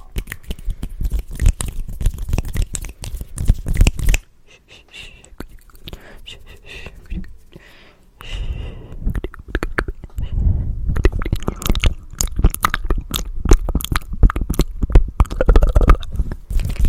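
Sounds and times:
hand sounds: 0:00.0 - 0:10.4
fast, aggressive wet and dry mouth sounds: 0:00.0 - 0:16.8.

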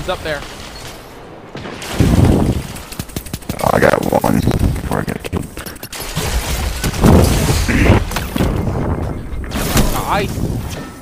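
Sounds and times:
speech: 0:00.0 - 0:00.6, 0:03.8 - 0:05.4, 0:10.1 - 0:10.9
Destiny 2 game noise: 0:00.0 - 0:11.0
ice grenade explosion in Destiny 2: 0:00.4 - 0:02.9, 0:06.0 - 0:10.7.

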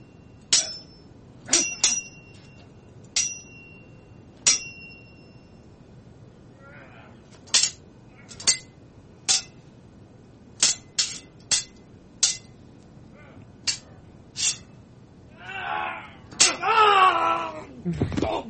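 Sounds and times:
sharp metallic sword clangs and ringing blade strikes: 0:00.5 - 0:02.6, 0:03.2 - 0:03.8, 0:04.5 - 0:05.3, 0:07.5 - 0:09.6, 0:10.6 - 0:12.5, 0:13.7 - 0:14.7, 0:16.4 - 0:16.6
wailing voice: 0:15.3 - 0:18.4.

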